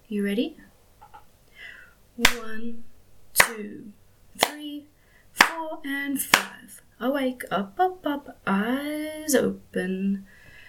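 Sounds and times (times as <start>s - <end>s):
speech: 0.1s - 0.7s, 2.2s - 4.9s, 5.5s - 10.4s
hand claps: 3.4s - 3.6s, 4.4s - 4.6s, 5.4s - 5.6s, 6.3s - 6.5s.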